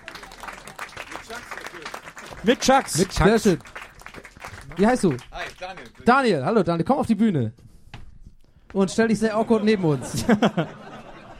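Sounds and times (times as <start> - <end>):
small audience applause: 0.0 - 6.1
speech: 2.4 - 3.7, 4.8 - 7.6, 8.7 - 10.8
laughter: 9.2 - 11.3.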